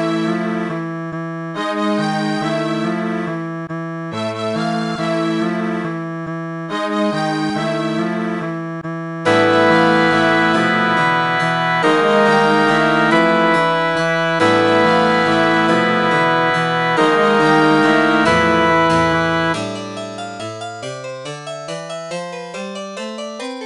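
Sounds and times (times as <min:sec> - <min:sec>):
MIDI music: 0:00.2 - 0:22.6.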